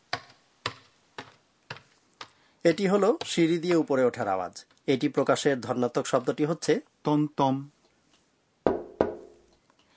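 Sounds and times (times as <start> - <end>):
speech: 2.6 - 7.8
knocking on a door: 8.7 - 9.4.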